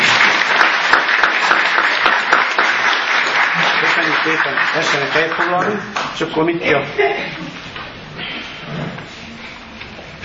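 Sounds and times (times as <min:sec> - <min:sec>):
audience applause: 0:00.0 - 0:06.2
speech: 0:04.2 - 0:07.6.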